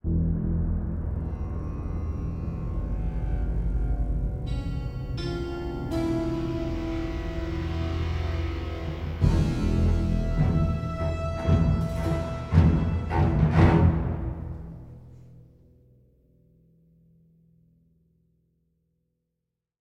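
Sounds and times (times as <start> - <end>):
string instrument: 0.7 - 15.6.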